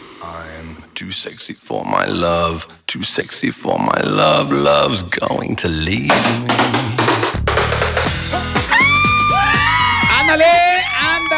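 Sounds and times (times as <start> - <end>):
speech: 1.0 - 7.0, 8.3 - 8.6, 10.3 - 11.3
music: 6.1 - 11.3
girls screaming and cheering: 8.3 - 11.3.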